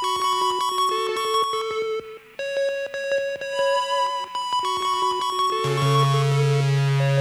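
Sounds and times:
music loop: 0.2s - 7.2s
instrumental solo: 4.5s - 7.2s.

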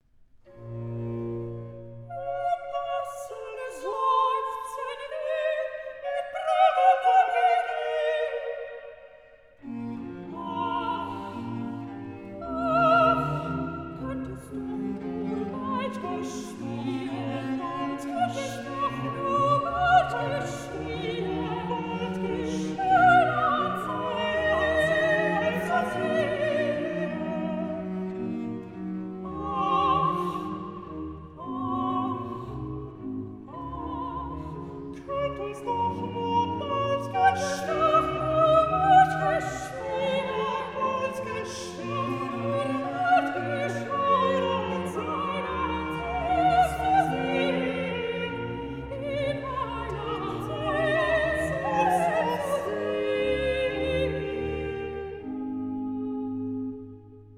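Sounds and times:
recitative singing: 2.0s - 57.3s.

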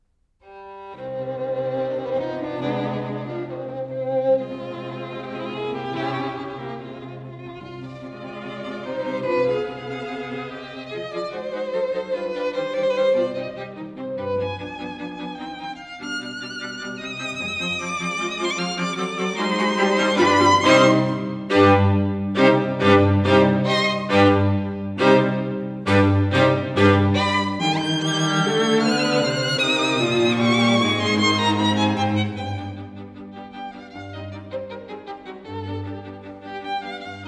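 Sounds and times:
string quartet in C minor: 0.4s - 37.2s.

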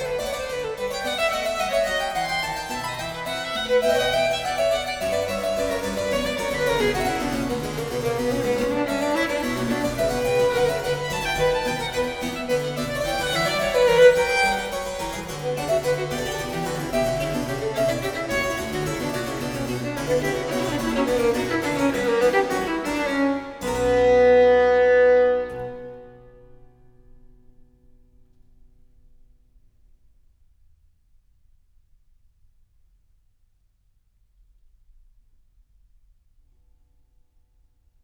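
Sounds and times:
harpsichord: 0.0s - 23.9s
violin: 0.0s - 26.6s.

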